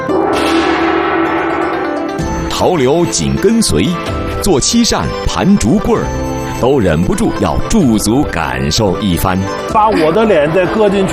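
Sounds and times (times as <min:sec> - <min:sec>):
large brass gong struck: 0:00.0 - 0:04.3
speech: 0:02.6 - 0:11.1.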